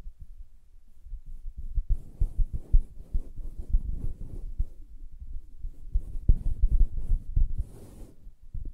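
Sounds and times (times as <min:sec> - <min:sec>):
soft taps and scratches on a fabric surface: 0:01.5 - 0:04.8, 0:05.9 - 0:08.2.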